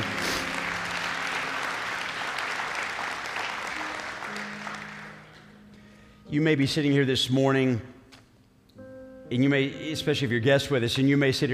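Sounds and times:
audience applause: 0.0 - 5.5
speech: 6.3 - 7.9, 9.3 - 11.5.

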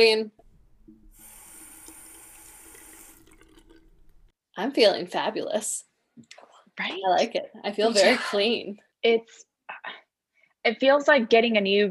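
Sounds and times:
speech: 0.0 - 0.4, 4.6 - 10.0, 10.6 - 11.8
water running from a tap while washing off a face mask: 0.4 - 4.3.

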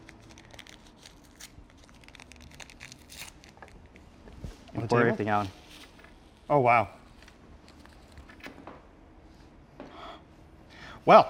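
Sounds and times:
small paper sugar packet being torn open: 0.0 - 3.8
low steady hum: 0.0 - 11.2
speech: 4.8 - 5.6, 6.5 - 7.0, 11.1 - 11.2.

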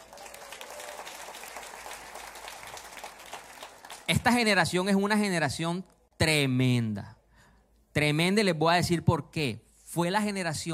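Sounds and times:
crowd applause: 0.0 - 4.5
speech: 4.1 - 7.2, 8.0 - 10.7.

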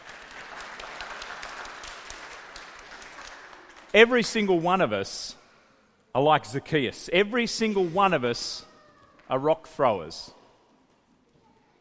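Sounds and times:
audience clapping: 0.0 - 4.8
speech: 3.9 - 5.4, 6.1 - 8.7, 9.3 - 10.4.

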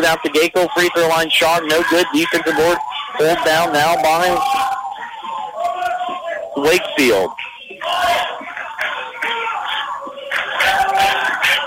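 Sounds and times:
speech: 0.0 - 4.6, 6.6 - 8.2
basketball crowd cheering for defense: 0.0 - 11.6.

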